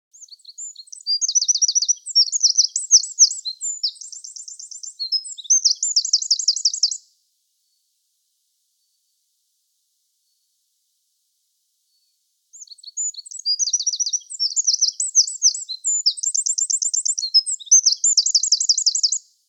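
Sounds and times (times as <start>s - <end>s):
wren singing: 0.1s - 7.0s, 12.0s - 19.2s.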